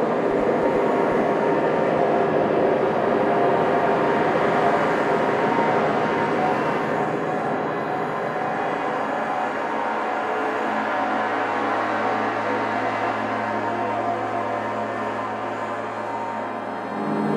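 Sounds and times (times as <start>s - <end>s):
discontent ambience: 0.0s - 17.3s.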